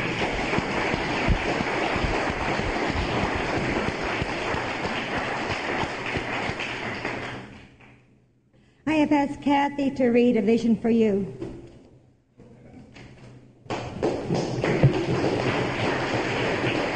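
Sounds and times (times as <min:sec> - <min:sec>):
audience applause: 0:00.0 - 0:07.6, 0:13.8 - 0:16.9
speech: 0:09.1 - 0:11.4.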